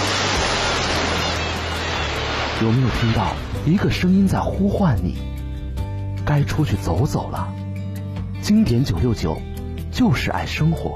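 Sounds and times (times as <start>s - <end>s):
ocean waves crashing on shore: 0.0s - 4.0s
speech: 2.6s - 5.4s, 6.3s - 7.6s, 8.4s - 10.9s.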